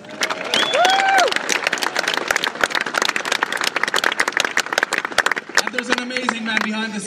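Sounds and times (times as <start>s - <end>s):
whooping cheer: 0.0s - 2.4s
crowd clapping: 0.0s - 7.0s.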